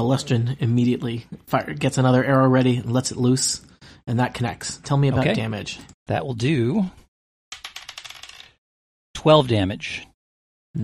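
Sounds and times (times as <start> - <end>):
speech: 0.0 - 7.0, 9.2 - 10.1
die clattering onto a hard table: 7.5 - 8.6.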